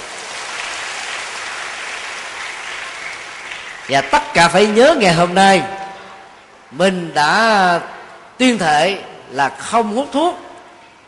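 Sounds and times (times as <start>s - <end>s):
audience applause: 0.0s - 4.8s
speech: 3.9s - 5.8s, 6.7s - 10.4s.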